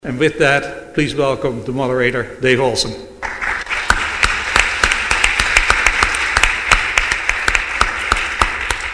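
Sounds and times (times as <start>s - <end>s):
speech: 0.0s - 3.1s
applause: 3.2s - 8.9s.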